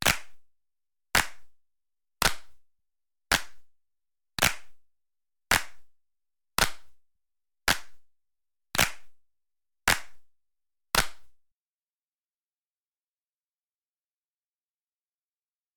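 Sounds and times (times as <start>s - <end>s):
hands clapping: 0.0s - 0.4s, 1.2s - 1.6s, 2.2s - 2.6s, 3.3s - 3.7s, 4.4s - 4.8s, 5.5s - 5.9s, 6.6s - 7.0s, 7.7s - 8.1s, 8.8s - 9.2s, 9.9s - 10.3s, 10.9s - 11.4s.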